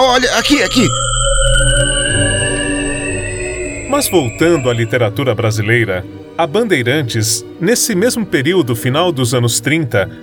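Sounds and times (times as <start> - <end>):
humming sound effect from radio drama: 0.0 - 5.4
speech: 0.2 - 2.3, 3.9 - 10.2.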